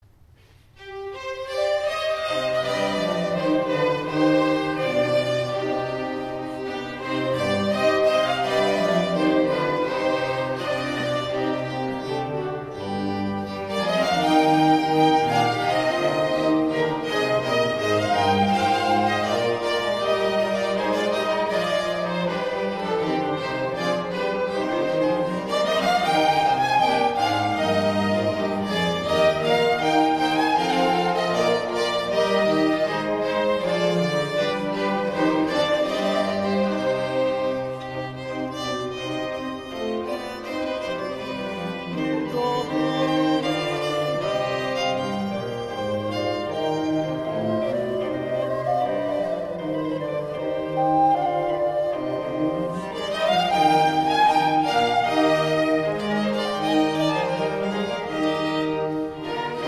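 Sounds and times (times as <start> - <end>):
instrumental mass suite: 0.3 - 59.6.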